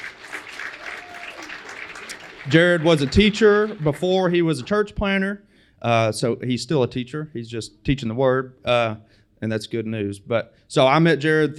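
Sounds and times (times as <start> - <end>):
applause: 0.0 - 4.9
speech: 2.4 - 11.5.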